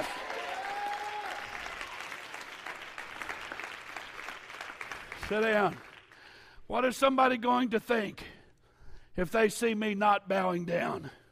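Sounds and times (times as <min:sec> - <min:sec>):
crowd shouting and cheering: 0:00.0 - 0:02.4
crowd clapping: 0:00.0 - 0:06.4
speech: 0:05.3 - 0:05.9, 0:06.7 - 0:08.3, 0:09.2 - 0:11.2.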